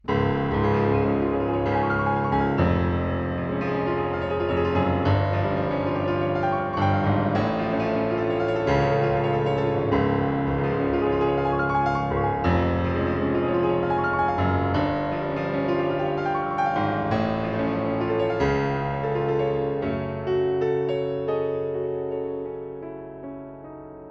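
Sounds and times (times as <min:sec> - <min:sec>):
piano: 0:00.0 - 0:24.0.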